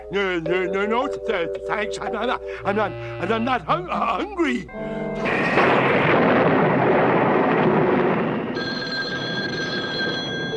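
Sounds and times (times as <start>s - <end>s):
speech: 0.1s - 6.3s
thunderstorm: 5.2s - 10.5s.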